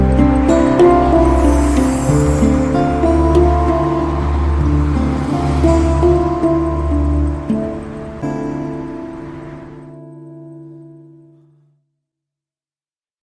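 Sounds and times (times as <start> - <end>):
handpan notes: 0.0 - 11.0.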